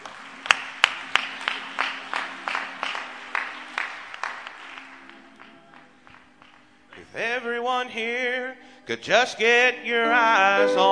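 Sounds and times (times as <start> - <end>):
audience clapping in rhythm: 0.0 - 7.7
speech: 7.2 - 10.9.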